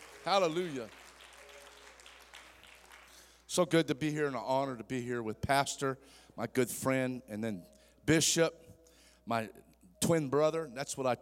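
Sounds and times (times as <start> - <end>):
audience clapping hands: 0.0 - 3.5
speech: 0.2 - 1.0, 3.6 - 8.6, 9.3 - 11.2.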